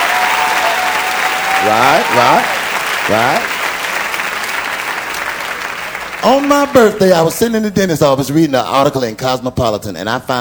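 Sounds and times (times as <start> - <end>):
audience applause: 0.0 - 7.8
speech: 1.6 - 3.5, 6.2 - 10.3.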